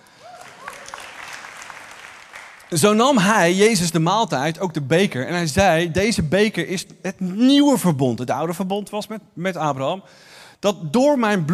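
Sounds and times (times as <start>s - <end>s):
applause: 0.0s - 2.8s
speech: 2.7s - 11.5s.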